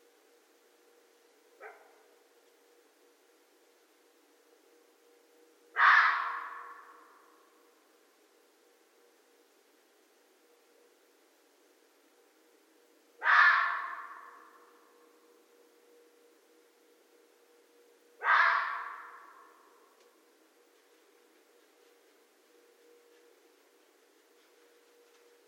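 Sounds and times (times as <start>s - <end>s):
quiet steady hum: 0.0s - 25.4s
red fox raspy calls: 5.7s - 7.4s, 13.2s - 15.0s, 18.2s - 20.0s.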